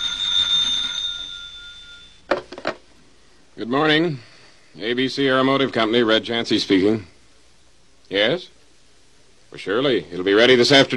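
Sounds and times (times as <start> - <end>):
metallic telephone bell ringing: 0.0 - 2.3
speech: 3.6 - 7.1, 8.1 - 8.6, 9.5 - 10.9.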